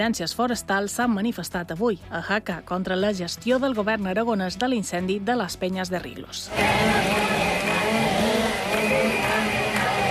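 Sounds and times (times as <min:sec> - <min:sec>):
speech: 0:00.0 - 0:08.3
chainsaws running: 0:06.5 - 0:10.0.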